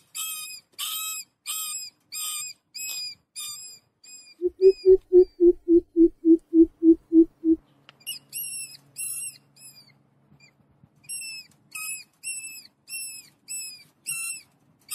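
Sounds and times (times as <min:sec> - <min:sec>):
mouse squeaking: 0:00.1 - 0:14.9
beeping: 0:04.4 - 0:07.6.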